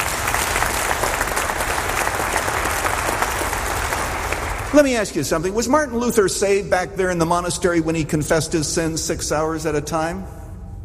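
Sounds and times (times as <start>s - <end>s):
group applauding: 0.0s - 5.2s
speech: 4.7s - 10.4s.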